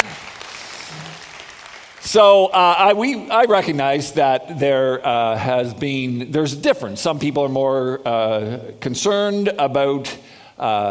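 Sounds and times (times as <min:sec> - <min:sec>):
audience clapping: 0:00.0 - 0:02.8
speech: 0:02.0 - 0:10.8.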